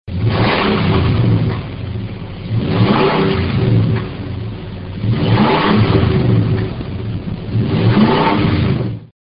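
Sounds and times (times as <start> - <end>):
Nissan Armada 5.6L engine: 0.0 - 9.1.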